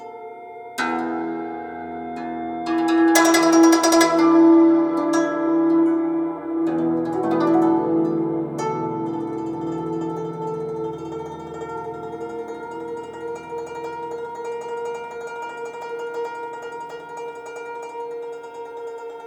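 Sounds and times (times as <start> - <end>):
guzheng playing: 0.0 - 19.2.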